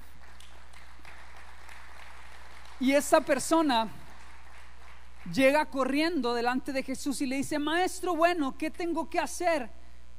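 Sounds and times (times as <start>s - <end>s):
crowd applauding: 0.0s - 5.5s
constant low electrical hum: 0.0s - 10.1s
speech: 2.8s - 4.0s, 5.3s - 9.8s.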